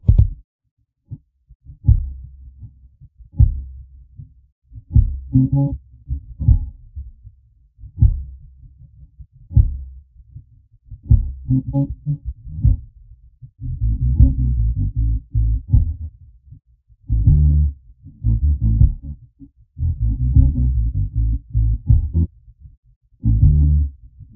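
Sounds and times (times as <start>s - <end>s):
bass: 0.0s - 0.4s, 1.1s - 24.3s.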